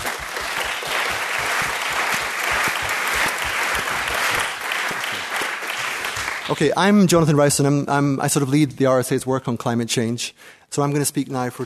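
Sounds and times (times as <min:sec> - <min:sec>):
audience applause: 0:00.0 - 0:06.8
speech: 0:06.5 - 0:11.6.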